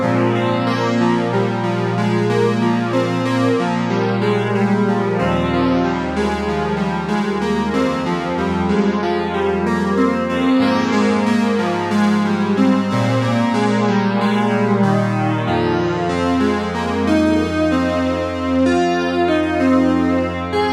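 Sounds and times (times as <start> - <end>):
PS3300 polyphonic synth and pads: 0.0 - 20.7.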